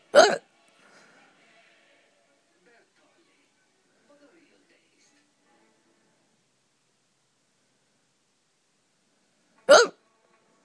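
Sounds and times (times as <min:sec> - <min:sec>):
person hiccuping: 0:00.2 - 0:00.4, 0:09.7 - 0:09.9
ribbiting: 0:00.2 - 0:00.4, 0:09.7 - 0:09.9.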